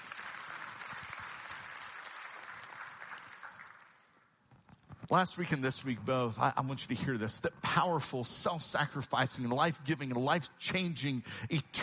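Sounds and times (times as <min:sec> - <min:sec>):
audience applauding: 0:00.0 - 0:04.4
speech: 0:05.1 - 0:11.8.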